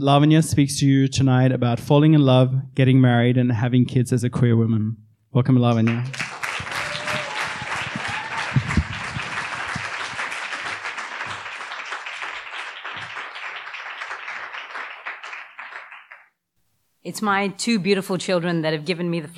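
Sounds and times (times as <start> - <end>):
speech: 0.0 - 6.2, 17.1 - 19.3
audience applause welcoming a speaker on stage for an evening talk: 5.9 - 16.3.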